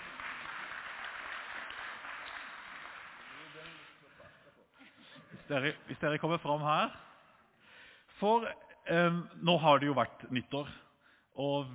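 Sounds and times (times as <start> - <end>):
audience clapping: 0.0 - 4.0
speech: 5.5 - 7.1, 8.2 - 10.8, 11.4 - 11.7.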